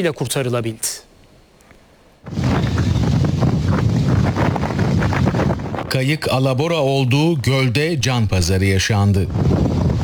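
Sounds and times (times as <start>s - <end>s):
speech: 0.0s - 1.1s, 5.9s - 9.6s
strong wind gusting over Küçükçekmece Lake in Istanbul, buffeting the microphone: 2.2s - 10.0s.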